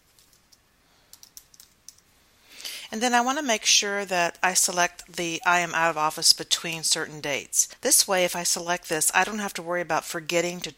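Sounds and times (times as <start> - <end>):
typing on a computer keyboard: 1.1 - 2.0
speech: 2.9 - 10.7.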